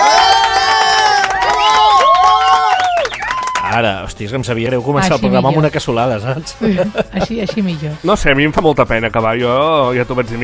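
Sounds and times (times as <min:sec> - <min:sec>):
audience applauding and cheering: 0:00.0 - 0:04.2
speech: 0:03.8 - 0:10.4
laughter: 0:06.5 - 0:08.1.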